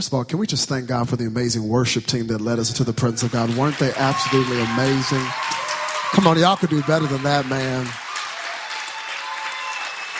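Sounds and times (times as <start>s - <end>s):
speech: 0.0s - 8.0s
audience applauding: 3.0s - 10.1s.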